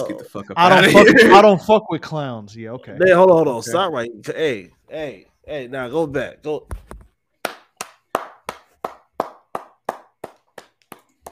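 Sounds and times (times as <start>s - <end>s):
speech: 0.0s - 6.9s
crowd round of applause: 7.4s - 11.3s.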